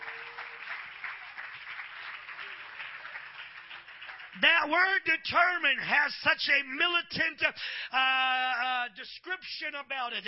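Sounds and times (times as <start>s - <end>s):
audience clapping hands: 0.0s - 5.0s
speech: 4.4s - 10.2s.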